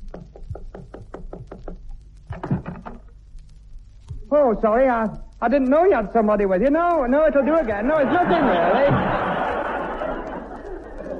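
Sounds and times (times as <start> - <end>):
knocking on an office door: 0.0 - 1.8
speech: 4.3 - 9.2
laughter: 7.7 - 11.1.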